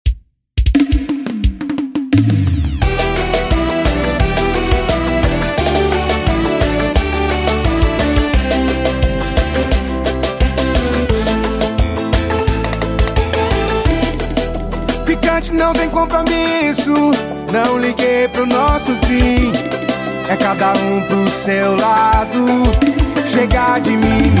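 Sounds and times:
piseiro music: 0.6 - 24.3.

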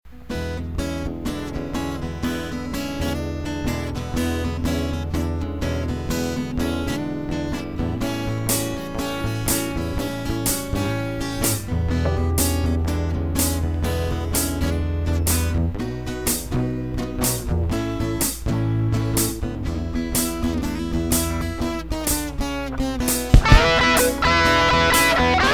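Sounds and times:
blues improvisation in E minor: 0.2 - 25.5.

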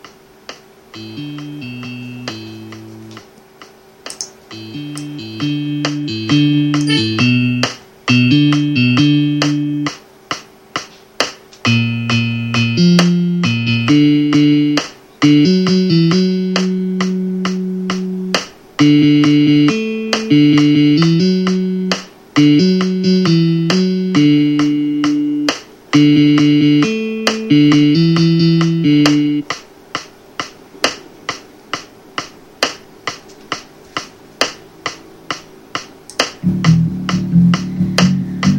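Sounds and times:
guitar: 1.0 - 3.2, 4.1 - 9.9, 11.6 - 29.5, 36.4 - 38.5
person singing: 6.8 - 7.4.

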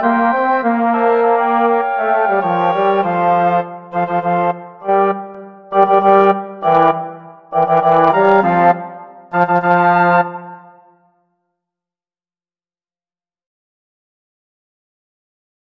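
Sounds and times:
wind quartet playing: 0.0 - 10.9.

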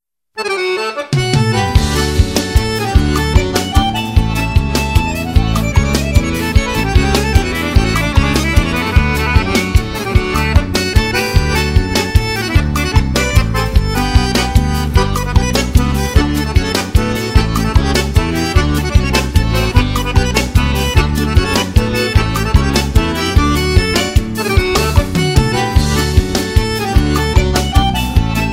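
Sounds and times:
instrumental music: 0.4 - 28.5.

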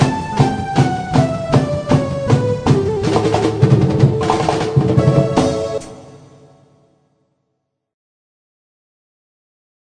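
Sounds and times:
opening music: 0.0 - 7.0.

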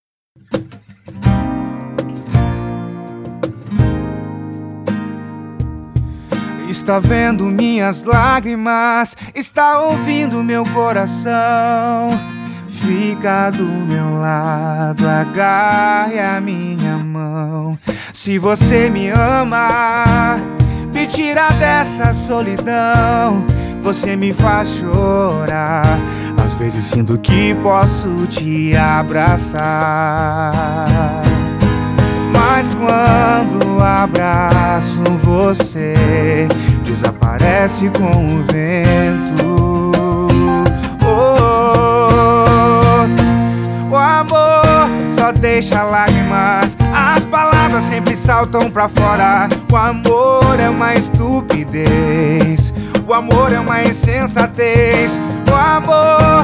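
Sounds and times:
sertanejo universitario sofrencia music: 0.4 - 56.4.

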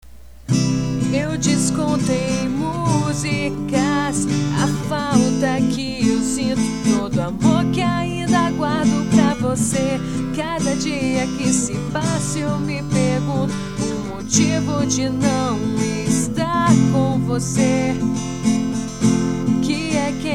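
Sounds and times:
acoustic guitar: 0.0 - 20.3
person singing: 1.0 - 20.3.

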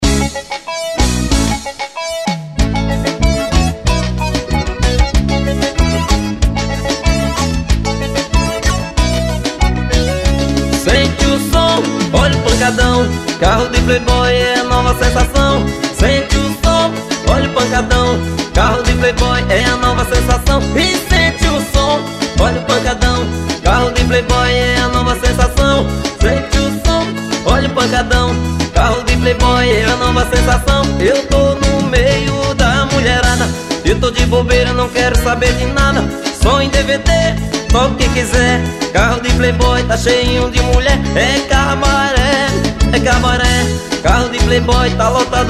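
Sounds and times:
forró music: 0.0 - 45.4.

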